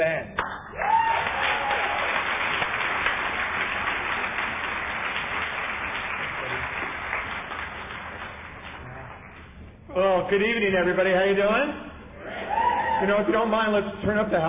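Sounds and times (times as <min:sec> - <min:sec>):
audience applauding at Overeaters Anonymous' 51st birthday party: 0:00.4 - 0:09.6
speech: 0:10.3 - 0:11.9, 0:13.0 - 0:14.4.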